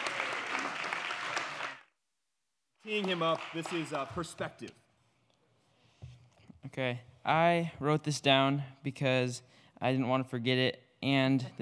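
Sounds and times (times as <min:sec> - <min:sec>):
audience clapping to welcome a comedian onto the stage: 0:00.0 - 0:01.9, 0:02.8 - 0:04.7
speech: 0:02.8 - 0:04.8, 0:06.8 - 0:11.6.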